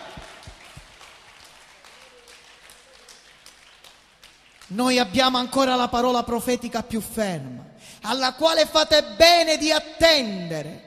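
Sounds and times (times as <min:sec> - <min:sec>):
crowd applause: 0:00.0 - 0:04.7
speech: 0:04.7 - 0:10.8.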